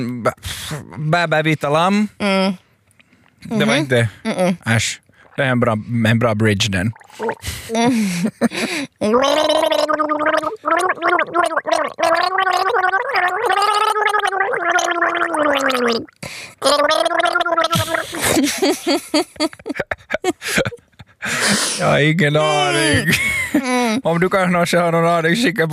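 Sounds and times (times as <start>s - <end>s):
speech: 0.0s - 2.6s, 3.4s - 25.7s
person gargling water while singing a song: 6.9s - 7.9s, 9.0s - 18.2s, 22.5s - 23.1s.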